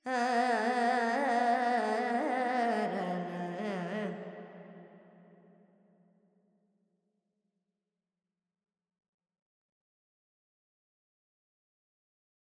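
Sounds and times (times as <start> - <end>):
Carnatic female vocal alaps in Dorian: 0.0 - 4.4.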